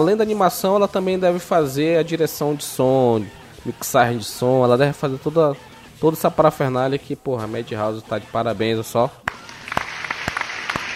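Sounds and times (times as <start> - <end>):
speech: 0.0 - 9.3
applause: 9.3 - 10.9.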